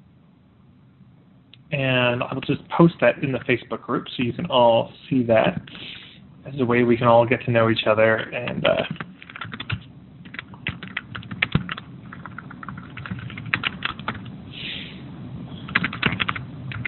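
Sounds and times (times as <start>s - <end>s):
speech: 1.7s - 9.0s
fingers typing on a computer keyboard: 8.9s - 14.3s, 15.7s - 16.8s.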